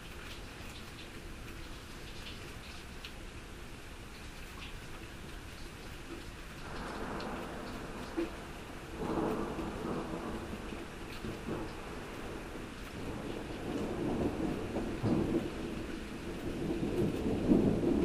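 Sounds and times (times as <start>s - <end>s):
rain: 0.0s - 18.0s
thunder: 6.6s - 18.0s.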